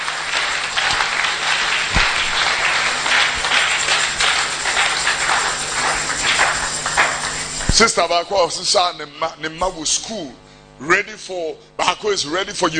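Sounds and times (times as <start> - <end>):
crowd clapping hands: 0.0 - 8.2
speech: 7.8 - 12.7.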